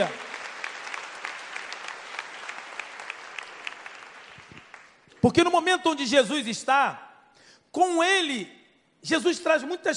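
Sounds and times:
speech: 0.0s - 0.2s, 5.2s - 7.0s, 7.7s - 9.9s
audience applause: 0.0s - 5.0s.

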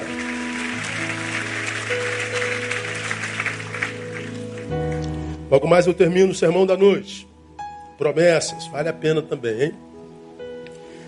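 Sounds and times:
applause: 0.0s - 5.1s
speech: 5.5s - 7.3s, 8.0s - 9.9s.

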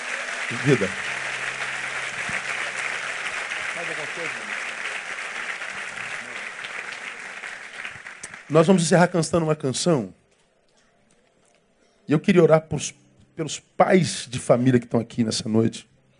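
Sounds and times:
audience applause: 0.0s - 9.0s
speech: 0.5s - 1.2s, 3.8s - 4.7s, 8.5s - 10.2s, 12.1s - 15.9s.

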